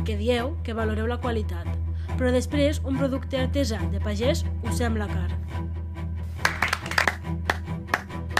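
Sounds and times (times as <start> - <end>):
speech: 0.0 - 5.7
ironic slow scattered handclaps from a played video: 6.4 - 8.3.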